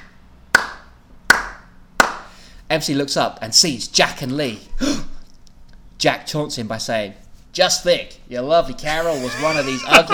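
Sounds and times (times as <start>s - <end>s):
person clapping: 0.5s - 2.3s
speech: 2.7s - 5.1s, 6.0s - 10.1s
laughter: 8.9s - 10.1s.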